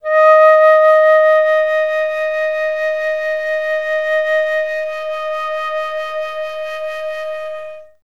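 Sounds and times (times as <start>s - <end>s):
flute note D sharp 4: 0.0s - 8.0s.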